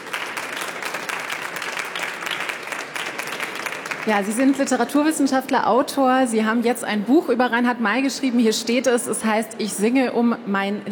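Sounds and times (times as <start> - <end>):
audience applause: 0.0 - 4.9
speech: 4.0 - 10.8.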